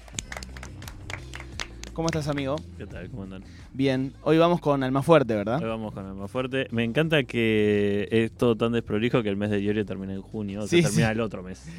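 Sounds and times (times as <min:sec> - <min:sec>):
scattered applause: 0:00.0 - 0:02.6
speech: 0:02.0 - 0:11.7.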